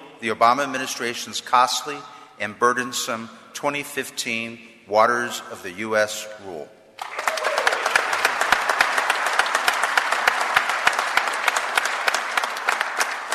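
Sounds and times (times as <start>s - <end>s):
speech: 0.2s - 7.2s
crowd applauding: 7.0s - 13.3s.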